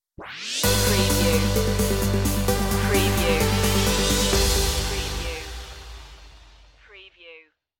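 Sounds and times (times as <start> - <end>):
positive energy music stinger: 0.6 - 6.4.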